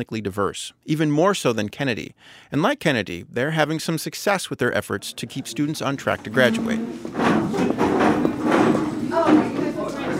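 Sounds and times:
speech: 0.0s - 8.3s
ninth graders moving their desks into small circles: 5.0s - 10.1s.

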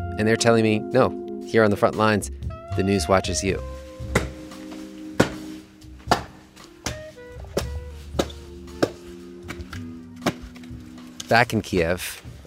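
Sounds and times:
speech: 0.2s - 3.8s, 11.3s - 12.4s
small axe chopping wood: 4.1s - 10.8s.

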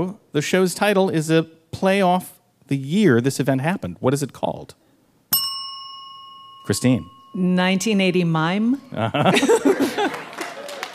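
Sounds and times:
speech: 0.0s - 4.8s, 6.7s - 10.2s
short burst of chuckling laughter: 8.9s - 10.9s
smattering of applause: 9.7s - 10.9s.

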